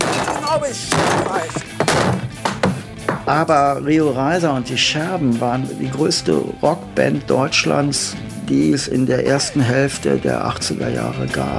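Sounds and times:
table being smashed: 0.0 - 3.3
speech: 0.6 - 2.2, 3.3 - 11.5.

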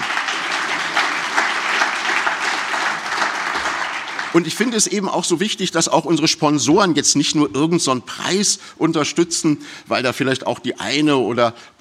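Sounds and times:
audience applause: 0.0 - 4.9
speech: 4.4 - 11.8.

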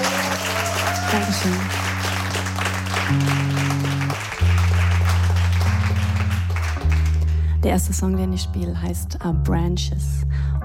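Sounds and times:
audience clapping: 0.0 - 7.5
speech: 1.1 - 1.8, 3.1 - 4.4, 7.6 - 10.4.

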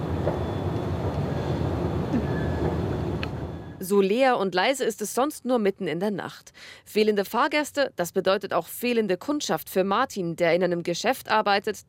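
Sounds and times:
empty escalators rumbling: 0.0 - 3.9
empty escalators whistling and squeaking: 2.2 - 2.8, 3.4 - 3.8
speech: 3.8 - 11.8.

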